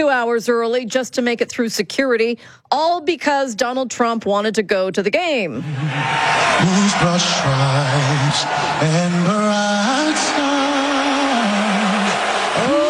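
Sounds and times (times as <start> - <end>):
speech: 0.0 - 10.5
arena crowd booing: 5.6 - 12.8.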